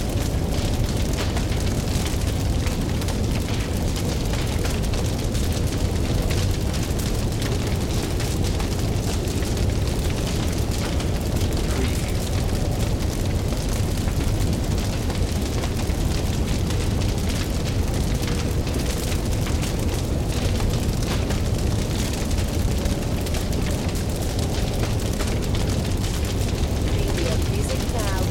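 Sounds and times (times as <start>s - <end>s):
heavy fire flames: 0.0s - 28.3s.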